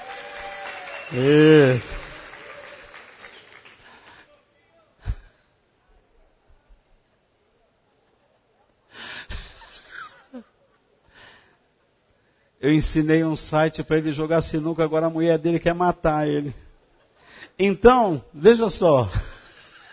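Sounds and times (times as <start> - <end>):
audience applause: 0.0 - 4.3
speech: 1.1 - 2.0, 12.6 - 16.6, 17.6 - 19.3.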